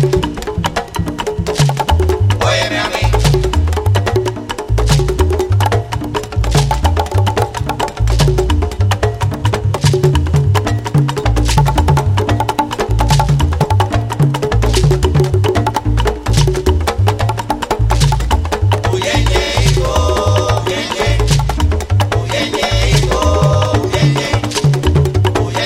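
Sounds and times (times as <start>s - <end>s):
three bata drums playing: 0.0s - 25.6s.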